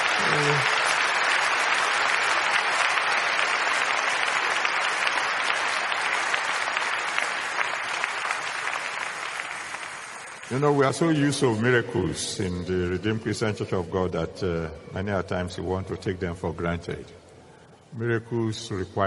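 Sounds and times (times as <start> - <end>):
Redeemed Christian Church of God congregation applause after prayer: 0.0 - 11.7
speech: 0.3 - 0.8, 10.5 - 17.2, 17.9 - 19.0.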